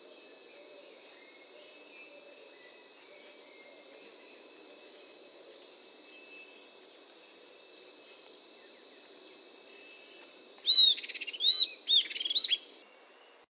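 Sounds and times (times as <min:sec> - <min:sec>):
Southern antpipit Corythopis delalandi whistles and trills: 0:10.6 - 0:12.7.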